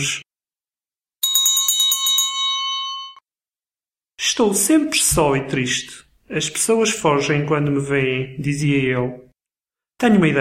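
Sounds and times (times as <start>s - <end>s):
speech: 0.0s - 0.2s, 4.3s - 9.2s, 10.0s - 10.3s
small bells jingling: 1.2s - 3.2s.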